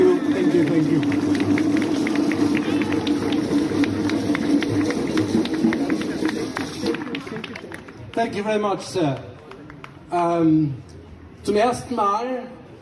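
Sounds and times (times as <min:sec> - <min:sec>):
audience applause: 0:00.0 - 0:08.4
speech: 0:08.2 - 0:09.3, 0:10.1 - 0:12.6.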